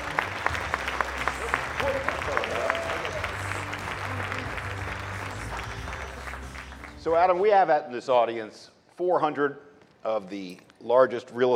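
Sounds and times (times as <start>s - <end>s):
audience applause welcoming a speaker at a real estate industry event: 0.0s - 7.1s
speech: 7.1s - 11.5s.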